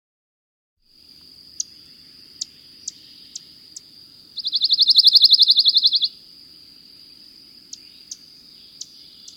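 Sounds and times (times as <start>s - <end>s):
pine warbler song of rapid trills: 1.6s - 6.2s, 7.6s - 9.3s.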